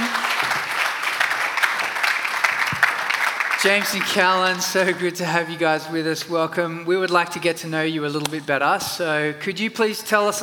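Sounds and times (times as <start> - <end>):
audience applause: 0.0 - 5.1
speech: 3.6 - 10.4.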